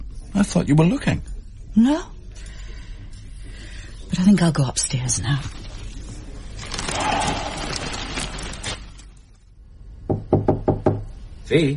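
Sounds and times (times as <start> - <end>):
speech: 0.4 - 2.5, 4.1 - 5.6, 11.5 - 11.7
knuckles knocking on a door: 10.1 - 11.1.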